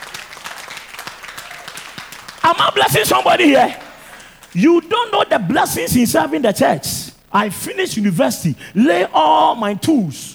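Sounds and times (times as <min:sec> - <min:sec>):
audience applause: 0:00.0 - 0:04.6
speech: 0:02.5 - 0:03.8, 0:04.5 - 0:10.3.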